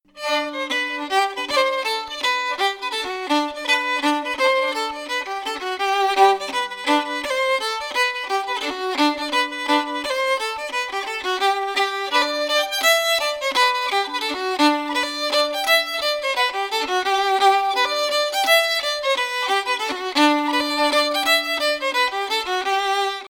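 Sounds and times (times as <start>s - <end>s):
fiddle: 0.0s - 23.3s.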